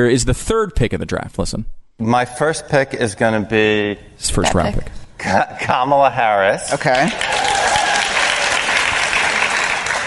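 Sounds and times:
speech: 0:00.0 - 0:07.5
live audience applauding a draft pick: 0:06.9 - 0:10.0.

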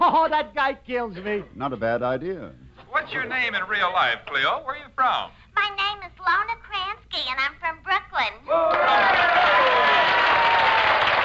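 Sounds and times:
speech: 0:00.2 - 0:10.6
audience applause: 0:08.7 - 0:11.2.

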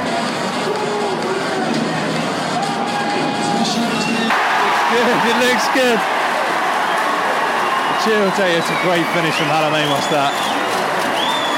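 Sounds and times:
stadium rugby crowd roaring and jeering: 0:00.0 - 0:11.5
crowd whistles: 0:02.9 - 0:11.5
speech: 0:05.3 - 0:06.2, 0:08.0 - 0:10.5.

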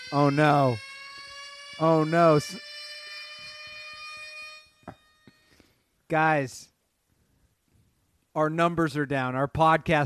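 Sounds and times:
alarm going off with a high electronic tone: 0:00.0 - 0:05.8
speech: 0:00.1 - 0:00.9, 0:01.8 - 0:02.7, 0:06.1 - 0:06.7, 0:08.4 - 0:10.0.

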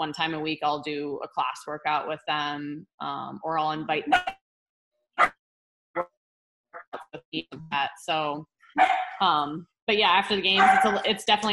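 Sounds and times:
speech: 0:00.0 - 0:04.4, 0:06.9 - 0:11.5
pet dog barking: 0:08.8 - 0:09.2, 0:10.6 - 0:11.0.

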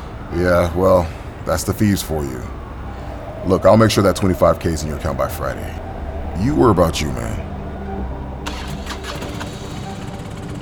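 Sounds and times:
speech: 0:00.3 - 0:02.6, 0:03.4 - 0:07.4
motorcycle engine starting: 0:06.4 - 0:10.6.

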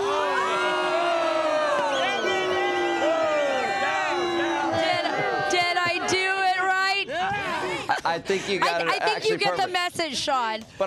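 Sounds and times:
large crowd cheering and shouting: 0:00.0 - 0:08.0
laughter: 0:04.2 - 0:06.7, 0:07.4 - 0:10.4
speech: 0:08.2 - 0:10.8.

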